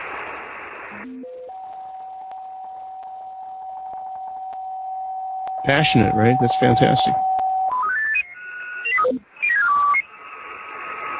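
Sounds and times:
speech: 0.9 - 1.4, 5.6 - 7.3
electronic tuning tones from a software-defined radio: 1.0 - 10.0.

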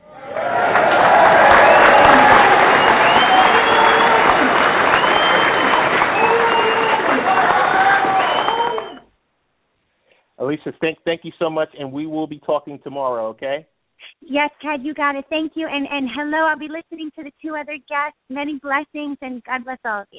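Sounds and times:
audience applause: 0.0 - 9.0
people cheering: 0.0 - 9.1
speech: 10.6 - 20.1.

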